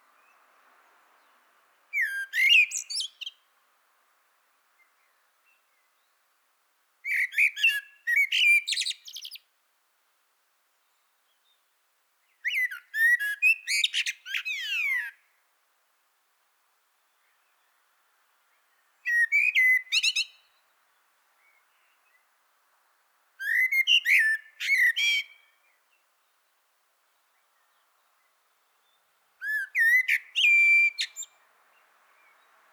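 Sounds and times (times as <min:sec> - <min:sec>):
Common blackbird singing whistled phrases with scratchy chatter: 0:01.2 - 0:03.5, 0:07.0 - 0:09.5, 0:12.2 - 0:15.3, 0:18.5 - 0:22.3, 0:23.4 - 0:26.5, 0:27.2 - 0:32.6.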